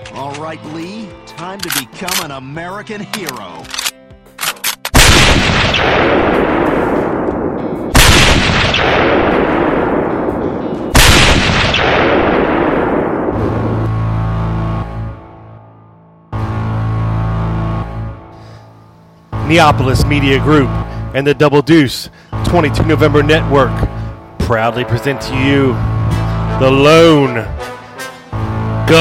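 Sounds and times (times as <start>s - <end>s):
speech: 0.2s - 3.8s, 19.5s - 25.9s, 26.6s - 27.6s
gunshots from the grassy knoll: 4.9s - 13.8s
steady low tonal drone: 6.4s - 28.9s.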